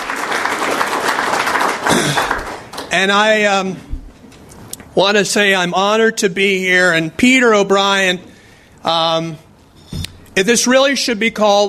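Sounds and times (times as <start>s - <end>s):
audience applause at a Chicago forum: 0.0s - 3.3s
speech: 2.9s - 3.9s, 5.0s - 9.4s, 10.4s - 11.6s.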